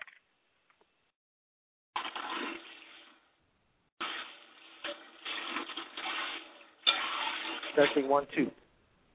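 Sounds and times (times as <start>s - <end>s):
person washing dishes: 2.0s - 3.3s, 4.0s - 8.5s
speech: 7.8s - 8.6s.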